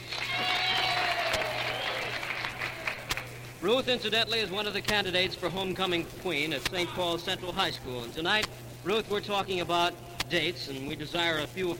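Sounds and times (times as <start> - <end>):
studio audience applause on a dating-themed show: 0.0 - 3.4
low electrical hum: 0.0 - 11.7
speech: 3.6 - 11.7.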